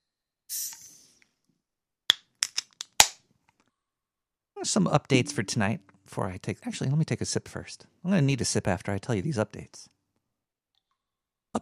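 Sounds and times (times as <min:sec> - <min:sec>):
tall boy Tecate beer can being cracked open: 0:02.1 - 0:03.2
speech: 0:04.6 - 0:10.0.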